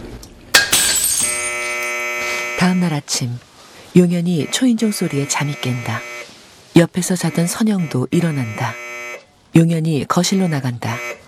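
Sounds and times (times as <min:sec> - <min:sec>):
tile falling from old wall and shattering: 0:00.5 - 0:02.0
speech: 0:02.6 - 0:06.1, 0:06.8 - 0:08.8, 0:09.5 - 0:11.2.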